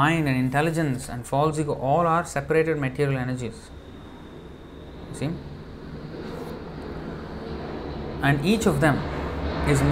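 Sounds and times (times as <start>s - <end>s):
speech: 0.0s - 3.8s, 5.1s - 5.5s, 8.2s - 9.9s
aeroplanes flying overhead in an exercise: 2.9s - 9.9s.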